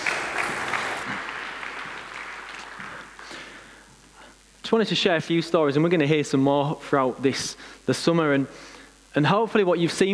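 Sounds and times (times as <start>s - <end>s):
audience applause: 0.0s - 3.8s
speech: 4.7s - 10.1s.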